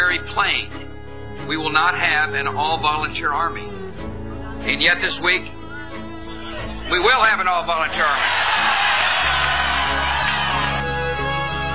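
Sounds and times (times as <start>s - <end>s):
speech: 0.2s - 0.8s, 1.5s - 3.8s, 4.6s - 5.6s, 6.9s - 8.8s
crowd cheering and whooping: 7.7s - 11.7s.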